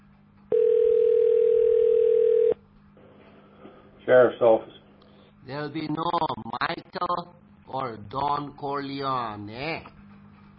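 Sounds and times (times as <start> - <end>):
telephone line tone as a call to a county sheriff's office is transferred: 0.5 - 2.6
speech: 4.1 - 4.8, 5.4 - 10.0.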